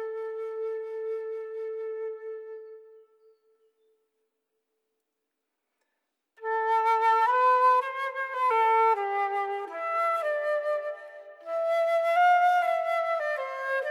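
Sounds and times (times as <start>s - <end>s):
flute improvisation: 0.0s - 3.5s, 6.4s - 13.8s.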